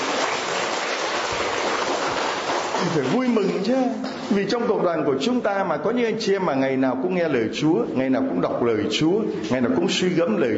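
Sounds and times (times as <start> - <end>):
audience applause: 0.0 - 3.8
speech: 2.8 - 10.5.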